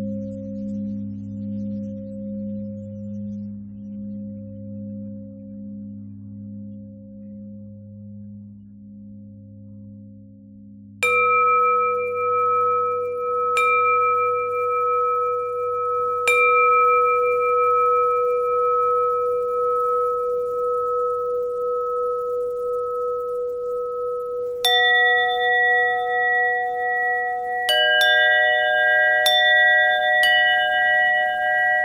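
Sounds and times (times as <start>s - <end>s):
pentatonic bell melody: 11.0s - 31.8s.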